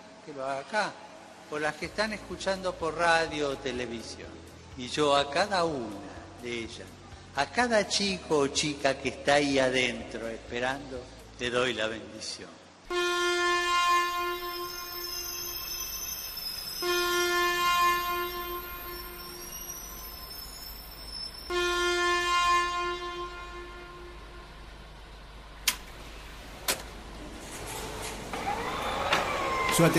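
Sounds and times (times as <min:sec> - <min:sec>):
speech: 0:00.3 - 0:13.0, 0:29.8 - 0:29.9
express train horn blasts: 0:12.9 - 0:24.7
express train rumble: 0:13.7 - 0:29.9.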